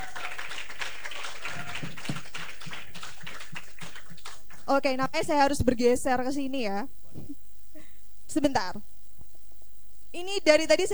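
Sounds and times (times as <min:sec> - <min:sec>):
audience applause: 0:00.0 - 0:04.7
speech: 0:04.7 - 0:07.4, 0:08.4 - 0:08.9, 0:10.2 - 0:10.9.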